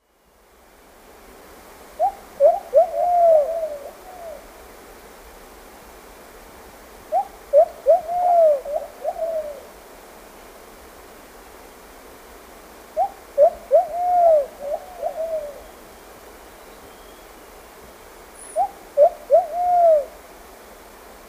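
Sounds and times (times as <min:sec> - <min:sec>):
plumbeous pigeon cooing: 0:02.0 - 0:04.5, 0:07.1 - 0:09.7, 0:13.0 - 0:15.7, 0:18.6 - 0:20.2.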